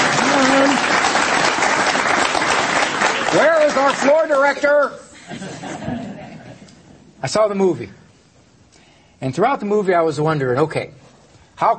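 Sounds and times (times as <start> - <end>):
audience clapping: 0.0 - 4.9
speech: 3.3 - 5.9, 7.2 - 8.0, 9.2 - 11.0, 11.6 - 11.7
laughter: 5.0 - 6.9.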